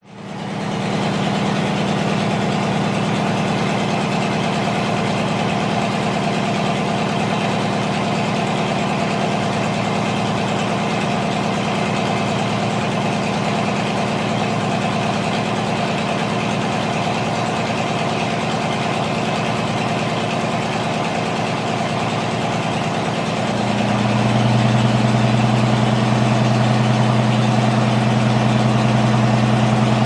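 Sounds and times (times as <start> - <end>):
1939 Matilda Mark 2 tank engine warming up, revving and idling: 0.1 - 30.0.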